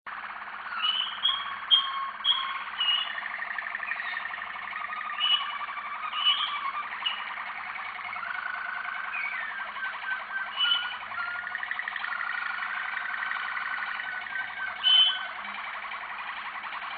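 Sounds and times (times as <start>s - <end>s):
canary singing: 0.1s - 16.9s.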